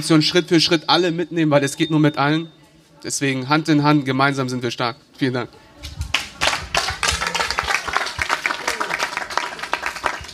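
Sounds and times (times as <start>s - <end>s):
speech: 0.0s - 6.0s
audience applause: 6.1s - 10.3s.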